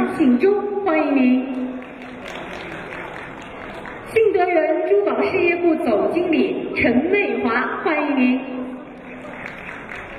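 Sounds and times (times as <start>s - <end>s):
speech: 0.2s - 1.6s, 4.2s - 8.6s
audience applause: 1.8s - 4.1s, 9.0s - 10.1s.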